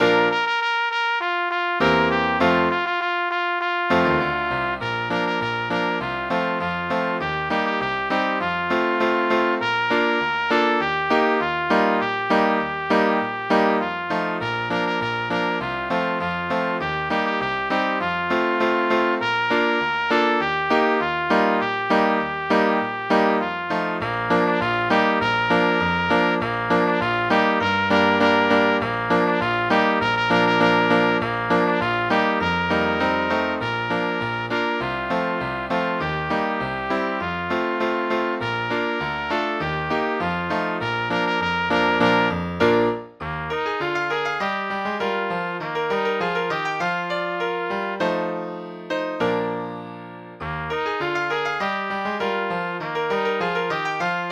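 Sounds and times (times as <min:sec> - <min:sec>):
trumpet: 0:00.0 - 0:49.6, 0:50.7 - 0:54.3
piano: 0:00.0 - 0:54.3.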